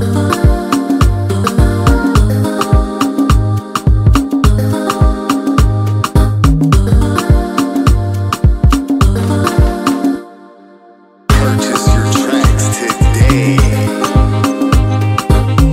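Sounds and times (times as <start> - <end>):
Afro highlife instrumental music: 0.0 - 15.7.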